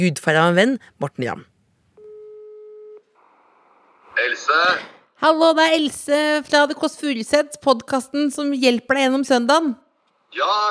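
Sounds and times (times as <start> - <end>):
speech: 0.0 - 1.5, 4.2 - 10.7
telephone ringback tone while calling someone: 2.0 - 3.0.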